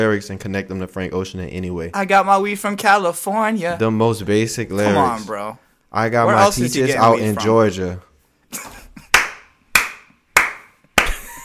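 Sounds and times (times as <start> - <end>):
speech: 0.0 - 8.7
slow clap: 9.0 - 11.4.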